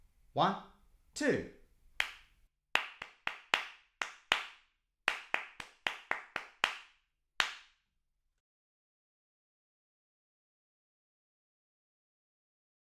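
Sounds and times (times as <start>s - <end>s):
speech: 0.4s - 1.6s
hands clapping a rhythm: 2.0s - 7.8s.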